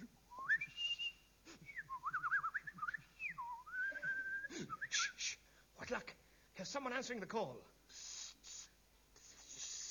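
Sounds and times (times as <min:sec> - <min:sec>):
person whistling a tune: 0:00.3 - 0:05.4
speech: 0:06.7 - 0:07.8.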